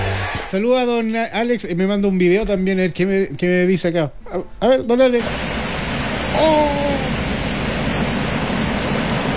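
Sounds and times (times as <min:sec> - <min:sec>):
speech: 0:00.5 - 0:05.6
heavy rain: 0:05.2 - 0:09.3.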